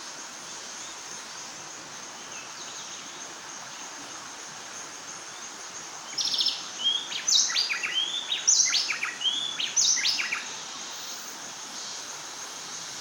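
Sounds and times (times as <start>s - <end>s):
Bay Wren Cantorchilus nigricapillus: 0.5s - 13.0s.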